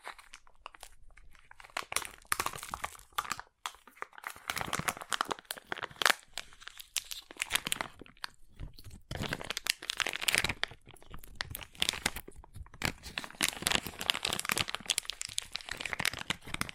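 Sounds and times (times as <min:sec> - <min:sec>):
crunchy slime squeezed and worked, crackling and crinkling: 0:00.0 - 0:16.7.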